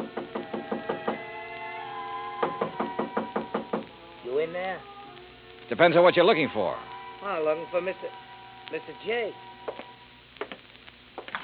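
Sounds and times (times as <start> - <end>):
knocking on a door: 0.0 - 1.2, 2.4 - 3.9
speech: 4.5 - 4.9, 5.7 - 9.5.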